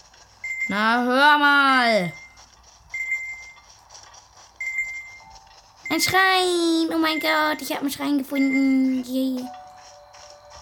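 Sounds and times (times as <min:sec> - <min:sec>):
high-pitched electronic beeps: 0:00.4 - 0:01.0, 0:02.0 - 0:03.7, 0:04.6 - 0:06.2, 0:06.9 - 0:10.6
speech: 0:00.7 - 0:02.2, 0:05.9 - 0:09.6.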